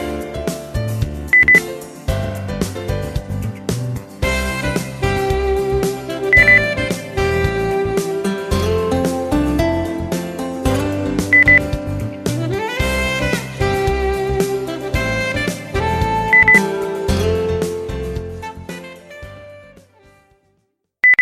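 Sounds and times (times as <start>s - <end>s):
happy pop song: 0.0s - 20.2s.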